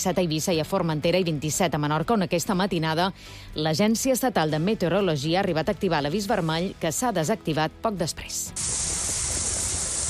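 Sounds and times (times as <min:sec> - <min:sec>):
speech: 0:00.0 - 0:09.2
rain falling in Mahó: 0:08.6 - 0:10.0.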